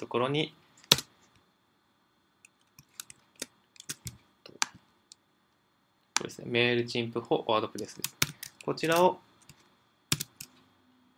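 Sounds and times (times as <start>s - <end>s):
speech: 0.0s - 0.6s, 6.3s - 9.3s
typing on a computer keyboard into a plugin search box: 2.8s - 4.2s, 7.7s - 10.6s.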